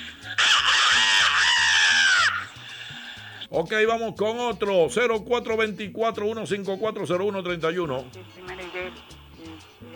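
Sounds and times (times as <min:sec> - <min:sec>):
person imitating a rooster crowing: 0:00.3 - 0:02.5
speech: 0:03.6 - 0:08.4.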